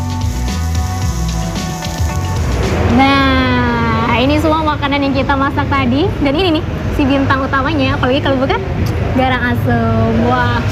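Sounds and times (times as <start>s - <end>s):
wok sizzling during stir-frying over a flambé flare: 0.0s - 5.0s
rising tone: 0.0s - 5.2s
music: 0.0s - 7.0s
speech: 4.8s - 10.7s.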